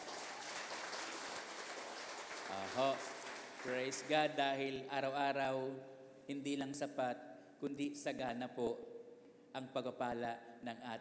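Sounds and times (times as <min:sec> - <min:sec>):
audience applause: 0:00.0 - 0:04.3
speech: 0:02.5 - 0:08.9, 0:09.5 - 0:10.9.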